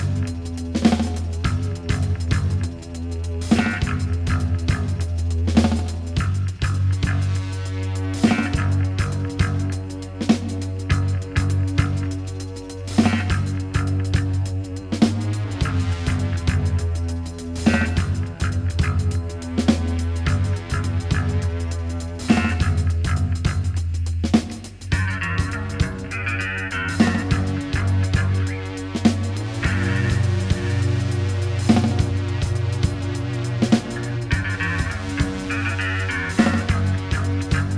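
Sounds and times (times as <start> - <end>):
deep synth: 0.0 - 37.7.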